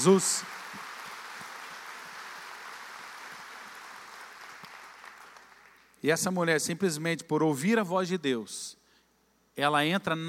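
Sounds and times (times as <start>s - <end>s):
speech: 0.0s - 0.6s, 6.0s - 8.8s, 9.6s - 10.2s
audience applause: 0.0s - 5.9s.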